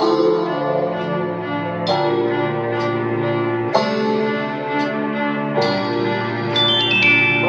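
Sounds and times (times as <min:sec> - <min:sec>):
sad string music: 0:00.0 - 0:07.4.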